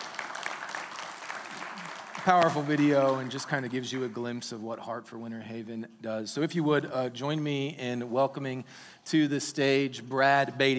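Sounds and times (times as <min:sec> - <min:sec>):
audience applause: 0:00.0 - 0:04.1
speech: 0:02.2 - 0:10.7.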